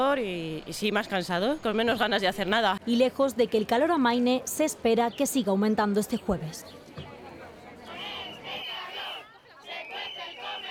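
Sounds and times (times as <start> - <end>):
speech: 0.0 - 6.8
parents and children chanting in protest in Zaragoza: 7.9 - 10.6.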